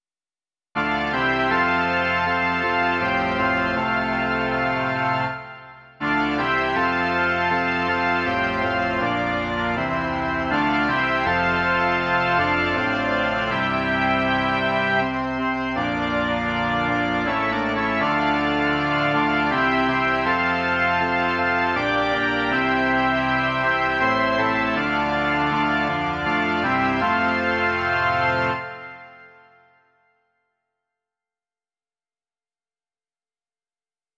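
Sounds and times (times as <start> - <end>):
organ: 0.8 - 29.9.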